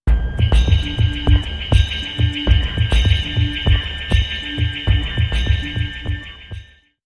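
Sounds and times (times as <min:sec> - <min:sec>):
beat sting: 0:00.1 - 0:06.8.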